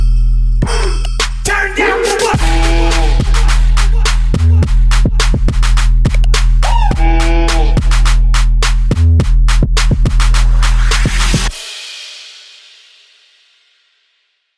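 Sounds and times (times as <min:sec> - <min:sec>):
remix music: 0:00.0 - 0:11.6.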